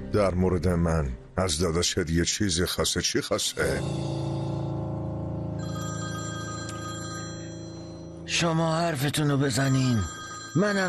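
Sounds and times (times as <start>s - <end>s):
speech: 0.1s - 4.3s, 8.3s - 10.8s
telephone bell ringing: 5.6s - 10.8s.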